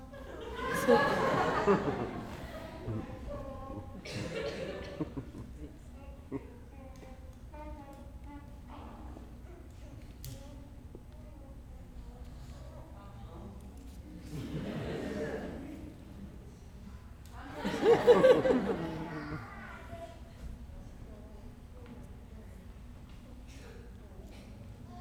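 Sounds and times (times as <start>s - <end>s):
audience laughing softly at a mime performance: 0.0s - 6.7s, 14.1s - 20.0s.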